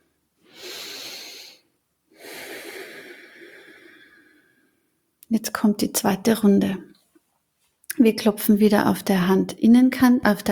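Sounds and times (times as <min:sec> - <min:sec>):
deep breathing in and out: 0:00.4 - 0:04.9
speech: 0:05.3 - 0:06.9, 0:08.0 - 0:10.4.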